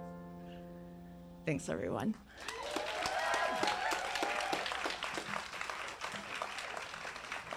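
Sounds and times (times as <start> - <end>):
speech: 1.5 - 2.6
audience clapping: 2.3 - 7.5
raised voices and cheers: 2.4 - 5.0.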